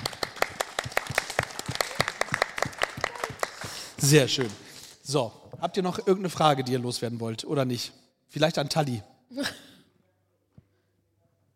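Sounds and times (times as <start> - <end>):
audience applause: 0.0 - 4.8
speech: 4.0 - 9.6.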